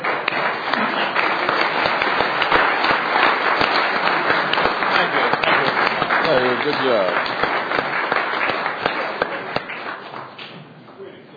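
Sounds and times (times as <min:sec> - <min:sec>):
audience applause: 0:00.0 - 0:10.4
speech: 0:06.3 - 0:07.4.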